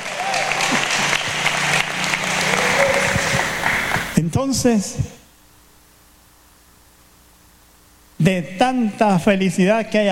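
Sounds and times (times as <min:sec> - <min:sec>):
audience applause: 0:00.0 - 0:04.2
speech: 0:04.5 - 0:05.1, 0:08.2 - 0:10.1.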